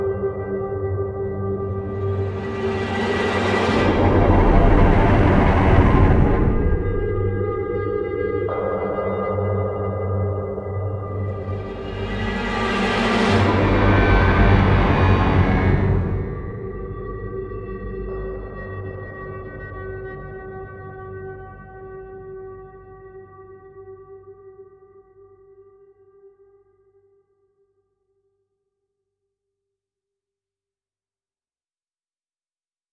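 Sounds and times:
suspense one-shot: 0:00.1 - 0:17.4.

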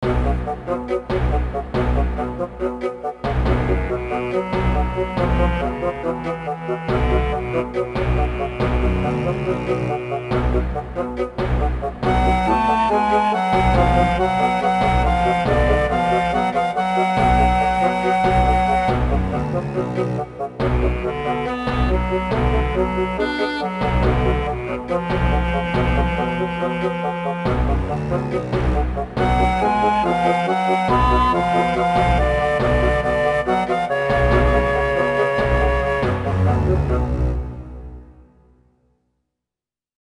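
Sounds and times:
background music: 0:00.0 - 0:39.1.

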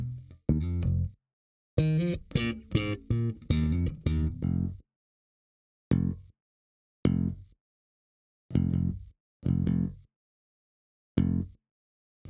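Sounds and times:
bass: 0:00.0 - 0:01.2, 0:01.8 - 0:04.8, 0:05.9 - 0:06.4, 0:07.0 - 0:07.6, 0:08.5 - 0:10.1, 0:11.2 - 0:11.6.

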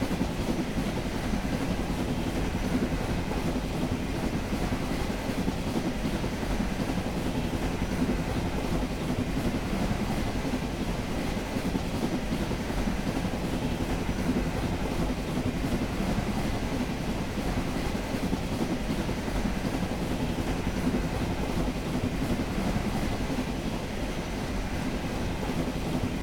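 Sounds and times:
train: 0:00.0 - 0:26.2.

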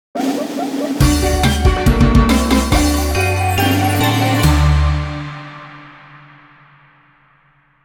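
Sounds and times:
victory fanfare: 0:00.2 - 0:05.2.

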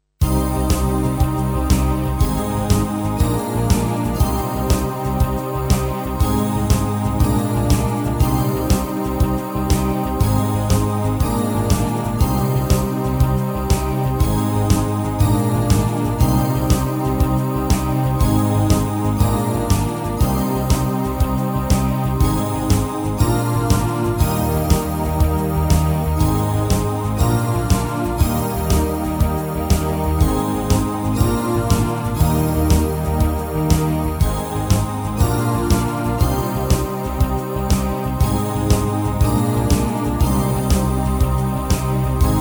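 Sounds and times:
synth: 0:00.2 - 0:42.4.

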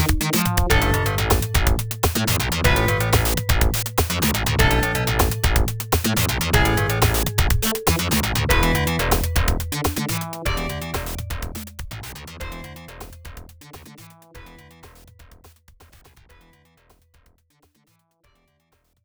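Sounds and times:
machinery background: 0:00.0 - 0:11.6.

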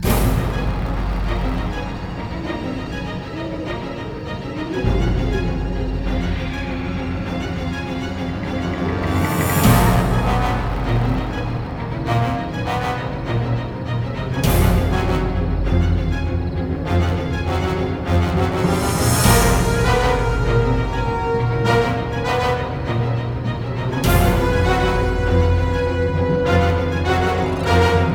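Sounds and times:
spooky combat music: 0:00.0 - 0:28.1.

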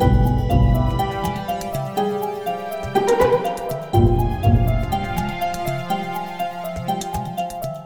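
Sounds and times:
somber music: 0:00.0 - 0:07.8.

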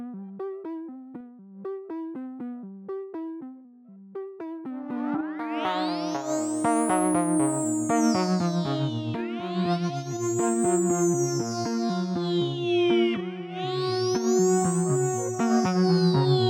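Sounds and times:
synths: 0:04.4 - 0:16.4.

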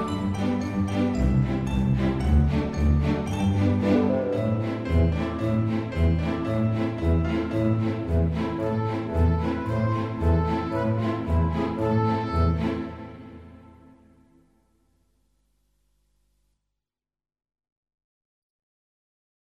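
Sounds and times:
game menu music: 0:00.0 - 0:14.0.

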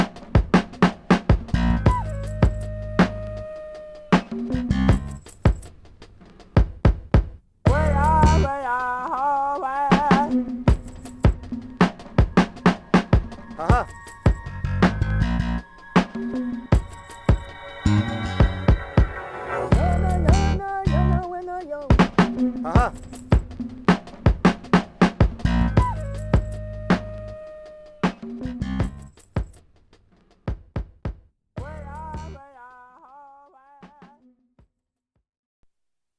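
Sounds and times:
native funk music: 0:00.0 - 0:06.5, 0:07.7 - 0:29.2, 0:31.6 - 0:32.4.

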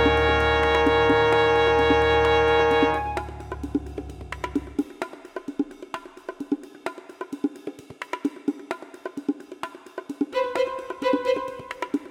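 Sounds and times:
tension music: 0:00.0 - 0:04.9, 0:10.4 - 0:12.1.

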